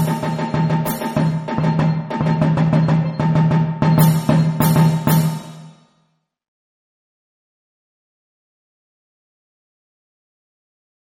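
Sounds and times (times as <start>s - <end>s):
funky rhythm: 0.0s - 5.6s.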